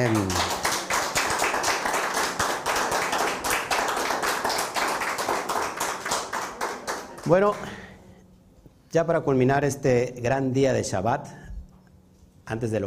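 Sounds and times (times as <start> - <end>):
speech: 0.0 - 0.5, 7.3 - 7.8, 8.9 - 11.4, 12.5 - 12.8
audience applause: 0.0 - 7.6.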